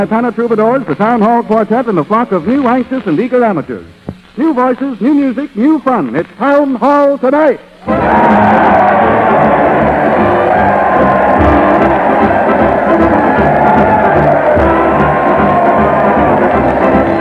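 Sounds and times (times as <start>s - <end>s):
speech: 0.0s - 9.3s
crowd cheering in the streets: 7.8s - 17.1s.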